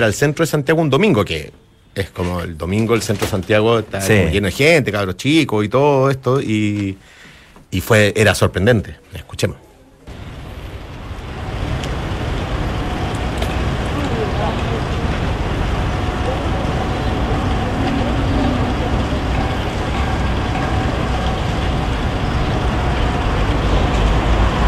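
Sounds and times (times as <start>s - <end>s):
speech: 0.0s - 9.6s
water fountain in Plaza de Armas de Santiago: 10.1s - 24.6s.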